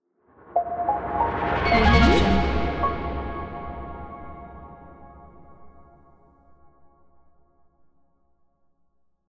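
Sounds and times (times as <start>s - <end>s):
web logo jingle: 0.6s - 5.6s.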